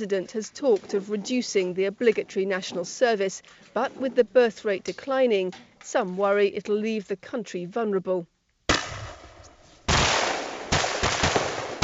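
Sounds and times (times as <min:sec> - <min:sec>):
speech: 0:00.0 - 0:08.3
rapid automatic gunfire from live firing drills: 0:09.9 - 0:11.8.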